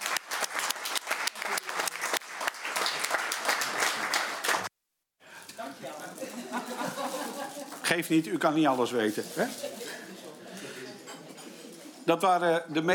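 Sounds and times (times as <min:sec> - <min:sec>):
applause in council chamber: 0:00.0 - 0:04.7
laughter: 0:05.9 - 0:07.8, 0:09.3 - 0:11.0
speech: 0:07.9 - 0:09.8, 0:12.1 - 0:12.9.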